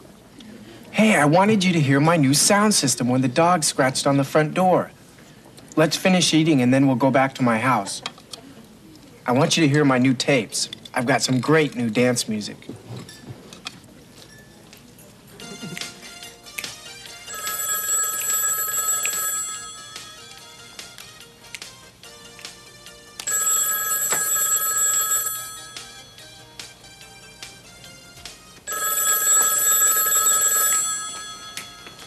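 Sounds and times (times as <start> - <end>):
speech: 0.9 - 5.0, 5.8 - 8.1, 9.3 - 13.1
telephone bell ringing: 17.2 - 20.7, 23.2 - 26.4, 28.7 - 32.0.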